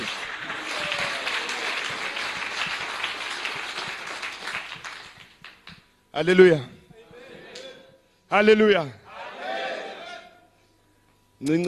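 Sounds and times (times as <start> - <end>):
audience round of applause: 0.0 - 5.8
speech: 6.2 - 6.8, 8.3 - 9.0, 11.4 - 11.6.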